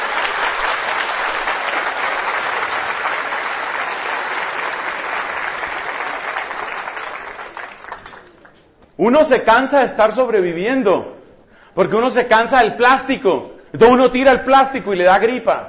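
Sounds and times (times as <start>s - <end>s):
audience applause: 0.0s - 8.6s
speech: 9.0s - 11.2s, 11.8s - 15.6s.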